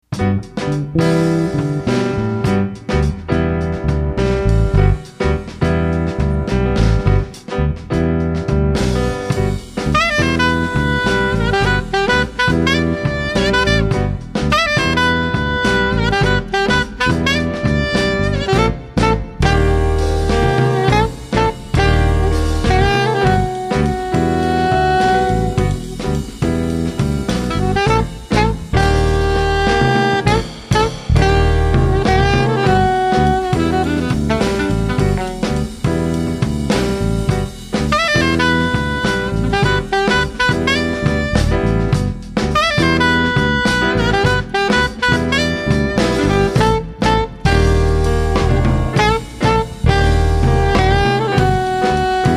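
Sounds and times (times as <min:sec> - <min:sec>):
jazz band playing: 0:00.0 - 0:52.3.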